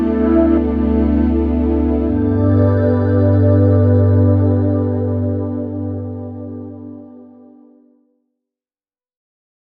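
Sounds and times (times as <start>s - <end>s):
orchestral music: 0.0s - 7.5s.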